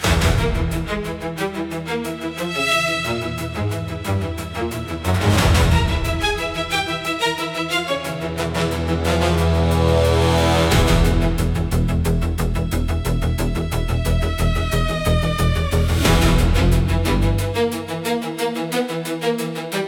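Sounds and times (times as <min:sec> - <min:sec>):
high tension suspense music for confrontation: 0:00.0 - 0:19.8.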